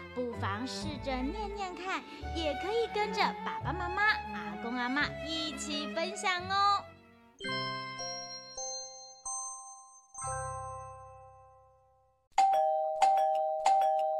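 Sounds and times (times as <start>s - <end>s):
speech: 0.2s - 7.6s
electronic doorbell chime melody: 7.4s - 14.1s.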